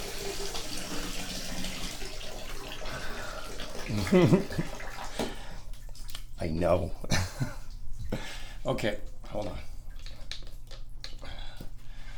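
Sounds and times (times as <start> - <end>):
tap water running into a bath or sink wetting a child's hair: 0.0 - 11.2
speech: 3.9 - 4.8, 6.4 - 7.5, 8.7 - 9.7.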